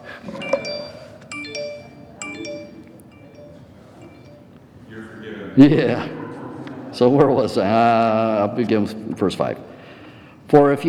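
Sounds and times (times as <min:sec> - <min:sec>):
mobile phone ringing with electronic melody: 0:00.0 - 0:04.5
speech: 0:05.6 - 0:06.2, 0:07.0 - 0:09.7, 0:10.5 - 0:10.8.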